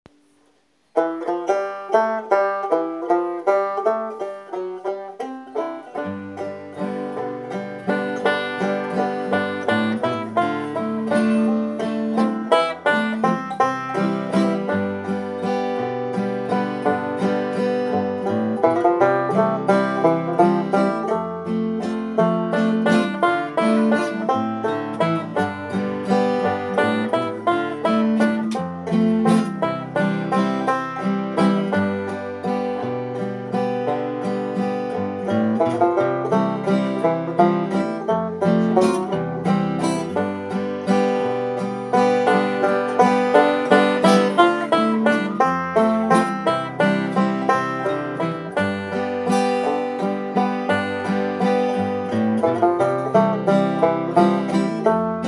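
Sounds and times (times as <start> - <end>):
waltz instrumental: 1.0 - 55.2.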